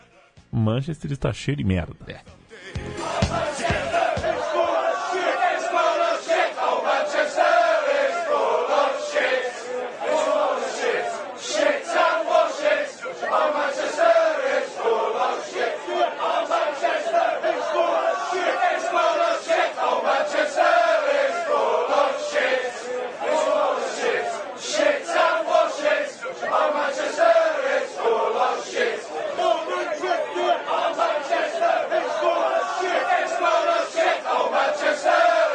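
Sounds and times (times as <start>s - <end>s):
speech: 0.6s - 3.0s
large crowd of football supporters chanting at stadium: 2.5s - 35.5s.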